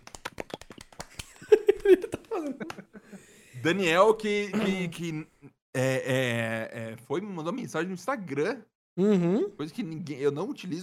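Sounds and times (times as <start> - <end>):
person imitating clapping with mouth: 0.0 - 2.8
laughter: 1.4 - 3.2
speech: 1.9 - 2.9, 3.6 - 10.8.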